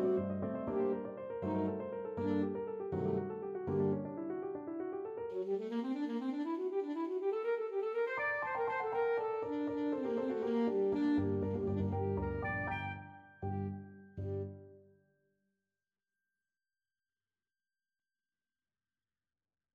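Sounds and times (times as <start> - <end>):
saxophone playing a scherzo: 0.0 - 4.1, 5.2 - 14.5.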